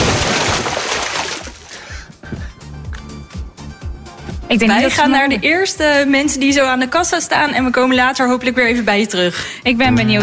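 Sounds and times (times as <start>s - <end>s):
water splashing at an outdoor swimming pool in Pernis: 0.0s - 1.9s
speech: 4.5s - 10.2s.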